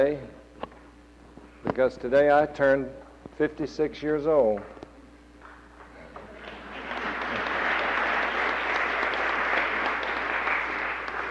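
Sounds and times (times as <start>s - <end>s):
speech: 0.0s - 0.4s, 1.7s - 4.8s
audience applauding: 5.8s - 11.2s.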